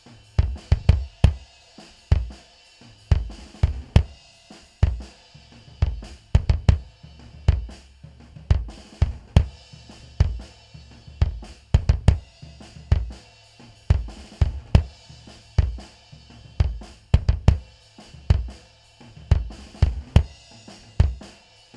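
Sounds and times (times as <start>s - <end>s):
bass drum: 0.0s - 21.4s.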